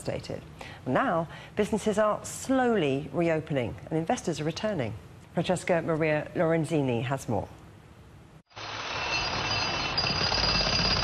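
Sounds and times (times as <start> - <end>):
speech: 0.0 - 7.6
power drill running in Aleppo's old market: 8.5 - 11.0.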